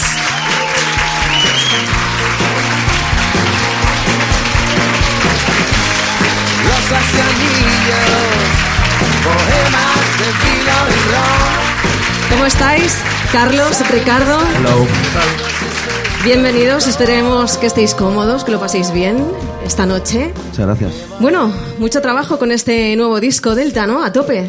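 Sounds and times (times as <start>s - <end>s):
audience applause: 0.0s - 17.9s
speech: 12.4s - 15.6s, 16.2s - 24.4s.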